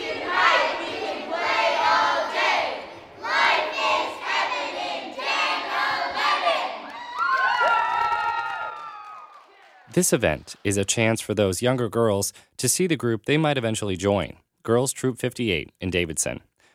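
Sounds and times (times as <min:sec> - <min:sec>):
children shouting a group cheer: 0:00.0 - 0:09.8
children squealing and whooping: 0:06.9 - 0:09.4
speech: 0:10.0 - 0:16.5.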